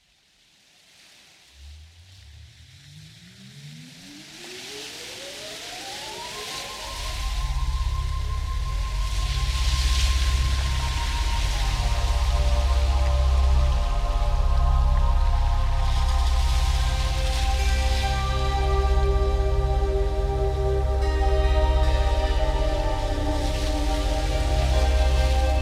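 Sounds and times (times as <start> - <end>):
instrumental music: 5.8 - 25.5.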